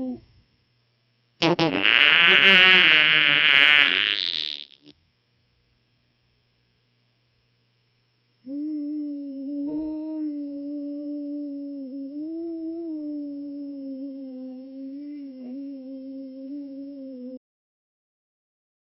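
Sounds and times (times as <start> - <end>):
farting sounds: 1.4 - 4.9.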